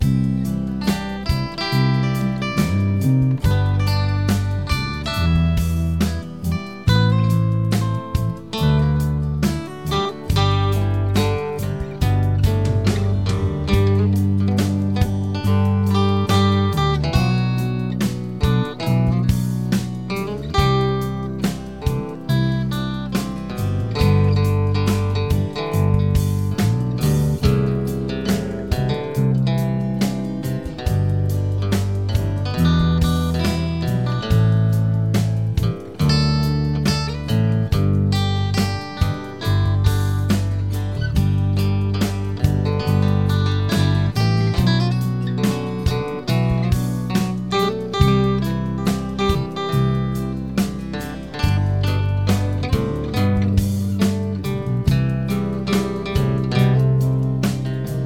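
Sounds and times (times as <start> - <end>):
guitars: 0.0 - 58.0.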